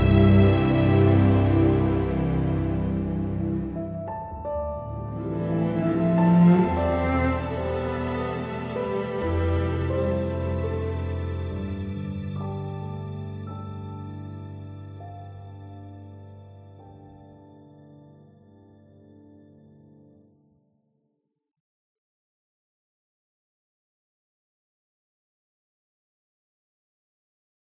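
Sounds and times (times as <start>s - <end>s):
intro music: 0.0s - 15.0s.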